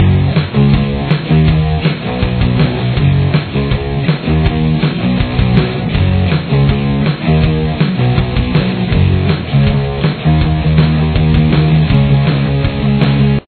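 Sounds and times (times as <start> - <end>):
guitar with chorus effect: 0.0 - 13.4.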